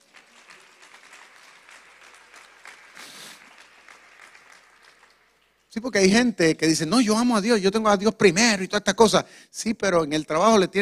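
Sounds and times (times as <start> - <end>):
applause: 0.0 - 5.8
speech: 5.8 - 10.7.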